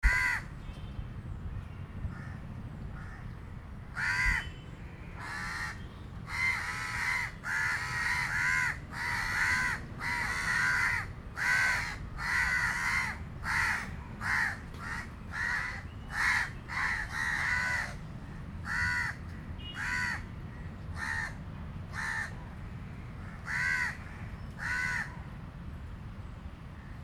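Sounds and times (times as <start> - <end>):
crows cawing: 0.0 - 0.5, 3.0 - 3.3, 3.9 - 4.4, 5.2 - 22.4, 23.2 - 25.2.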